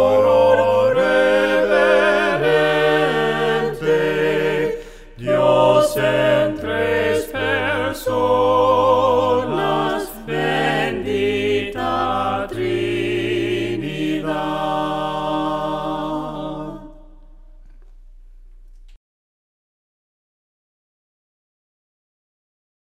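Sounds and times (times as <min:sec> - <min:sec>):
voices singing hymns a cappella: 0:00.0 - 0:17.4.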